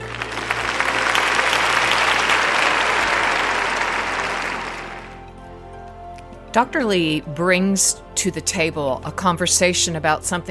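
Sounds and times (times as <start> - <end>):
audience applause: 0.0 - 5.4
speech: 6.6 - 10.4.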